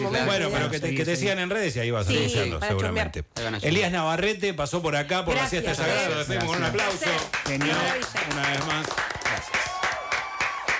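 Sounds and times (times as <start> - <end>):
speech: 0.0 - 9.1
audience applause: 6.2 - 10.7.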